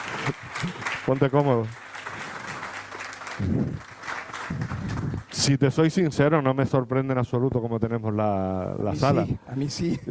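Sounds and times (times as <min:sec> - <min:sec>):
audience applause: 0:00.0 - 0:05.3
speech: 0:00.3 - 0:01.8, 0:05.4 - 0:10.0.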